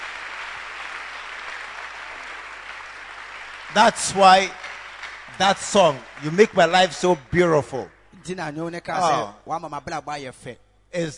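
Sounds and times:
audience clapping: 0:00.0 - 0:08.4
speech: 0:03.7 - 0:04.6, 0:05.4 - 0:11.1.

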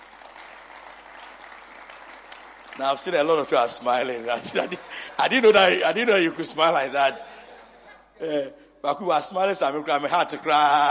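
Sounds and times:
audience clapping: 0:00.0 - 0:04.8
speech: 0:02.8 - 0:07.4, 0:08.2 - 0:10.8
laughter: 0:04.2 - 0:08.2.

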